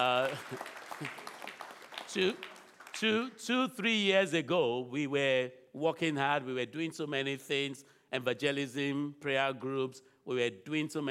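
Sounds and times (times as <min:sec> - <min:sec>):
speech: 0:00.0 - 0:01.3, 0:02.1 - 0:11.1
audience clapping: 0:00.0 - 0:03.6.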